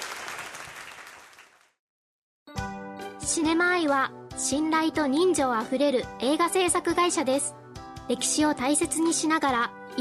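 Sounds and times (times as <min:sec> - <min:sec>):
audience applause: 0:00.0 - 0:01.8
speech: 0:03.3 - 0:09.9.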